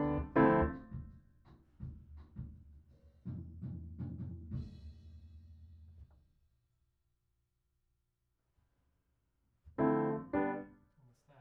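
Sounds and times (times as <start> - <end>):
piano: 0.0 - 1.1, 9.8 - 10.8.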